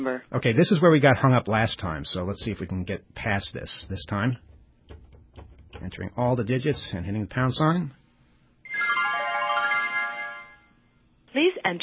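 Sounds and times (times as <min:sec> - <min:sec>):
speech: 0:00.0 - 0:04.5, 0:05.8 - 0:08.0, 0:11.7 - 0:11.8
voicemail system greeting chime: 0:08.7 - 0:10.8.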